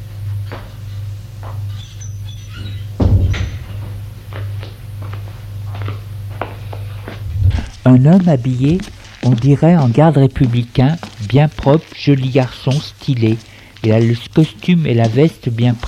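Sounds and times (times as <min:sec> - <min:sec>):
door being opened: 0:02.3 - 0:04.0
speech: 0:07.9 - 0:15.8.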